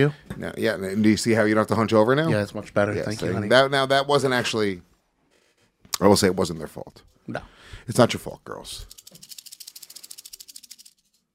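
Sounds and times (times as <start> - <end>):
speech: 0.0 - 4.9, 6.0 - 9.0
rattlesnake rattle shaking: 8.9 - 11.0.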